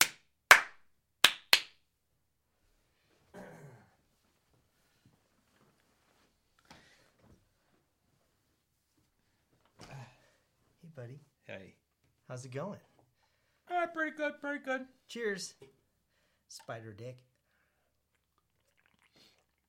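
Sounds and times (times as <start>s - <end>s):
clapping: 0.0s - 1.8s
speech: 11.0s - 12.9s, 13.7s - 15.8s, 16.5s - 17.3s.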